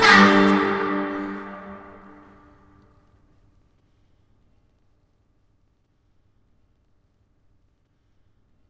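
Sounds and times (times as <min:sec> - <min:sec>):
Czech folk song: 0:00.0 - 0:02.7.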